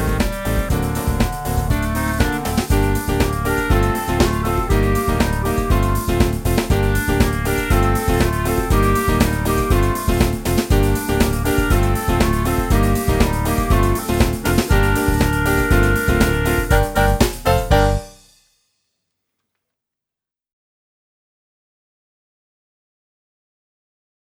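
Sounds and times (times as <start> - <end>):
clarinet: 0.0 - 18.1.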